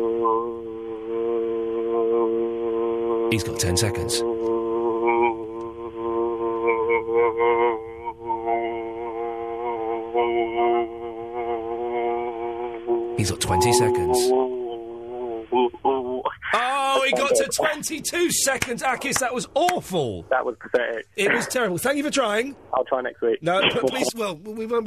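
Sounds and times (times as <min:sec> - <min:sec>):
man humming a sustained vocal drone: 0:00.0 - 0:16.4
speech: 0:03.3 - 0:04.6, 0:13.2 - 0:14.4, 0:17.1 - 0:24.8.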